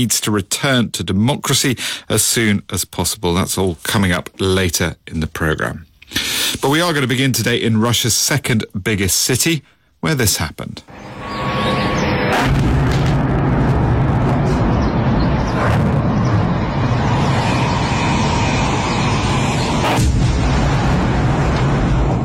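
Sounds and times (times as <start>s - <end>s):
speech: 0.0s - 11.6s, 12.3s - 12.9s
drone strikes exploding: 12.2s - 22.2s.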